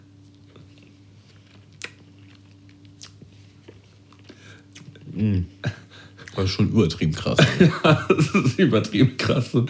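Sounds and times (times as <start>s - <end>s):
chewing a cream lemon tartlet from Italy: 0.3s - 5.1s
speech: 5.2s - 5.8s, 6.4s - 9.6s
laughter: 7.4s - 8.8s.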